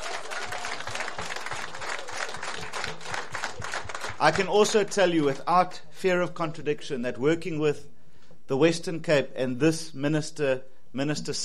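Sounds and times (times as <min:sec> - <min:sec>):
audience applause: 0:00.0 - 0:05.3
speech: 0:04.2 - 0:07.9, 0:08.5 - 0:11.4.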